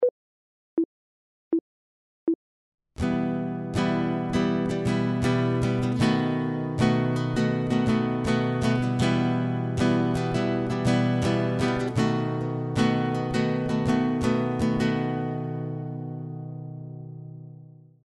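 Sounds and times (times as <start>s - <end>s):
guitar chord: 3.0s - 17.7s.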